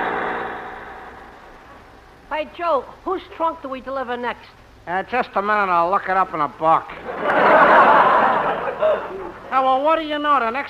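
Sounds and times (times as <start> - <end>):
truck engine droning while turning a corner: 0.0 - 1.8
speech: 2.4 - 7.5, 8.9 - 10.6
laughter: 7.0 - 9.5.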